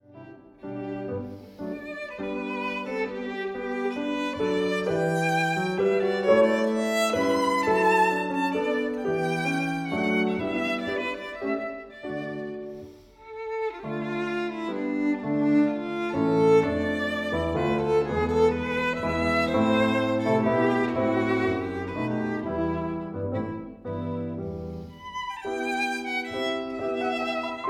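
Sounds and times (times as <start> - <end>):
violin: 0.0 - 27.6.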